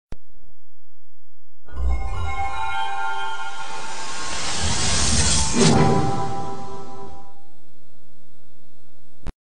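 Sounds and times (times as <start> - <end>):
startup sound: 1.7 - 7.5.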